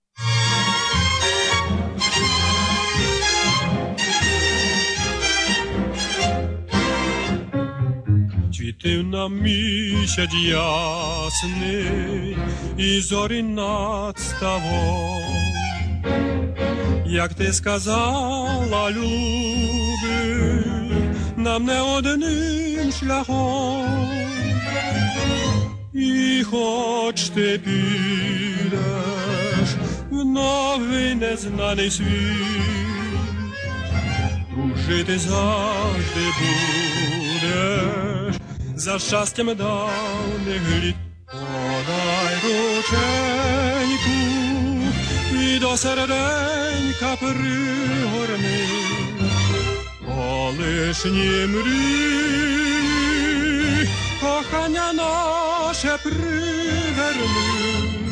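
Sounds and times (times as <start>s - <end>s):
Ukrainian tango music: 0.0s - 58.1s.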